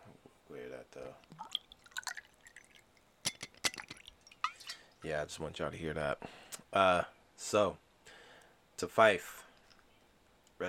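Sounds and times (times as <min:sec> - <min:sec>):
speech: 0:00.9 - 0:01.6, 0:05.0 - 0:07.8, 0:08.8 - 0:09.4
whiskey pouring into a glass: 0:01.1 - 0:05.0.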